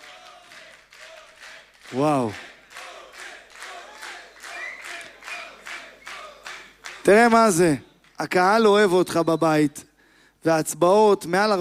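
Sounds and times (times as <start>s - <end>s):
crowd applauding: 0.0s - 8.3s
speech: 1.9s - 2.5s, 7.1s - 11.5s.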